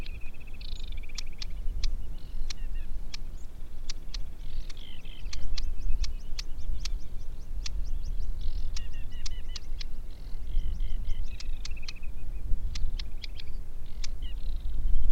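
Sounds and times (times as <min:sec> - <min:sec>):
Aquatic warbler Acrocephalus paludicola song with clicks and rattling trills: 0:00.0 - 0:15.1.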